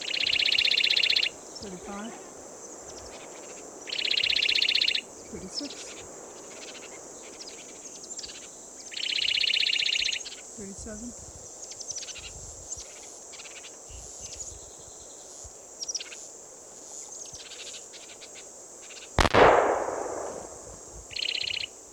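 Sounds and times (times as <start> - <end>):
faint high insect-like chirps: 0.0 - 21.9
speech: 1.6 - 2.3, 5.3 - 5.9, 10.6 - 11.4
gunshot from Ned's gun: 19.2 - 20.8.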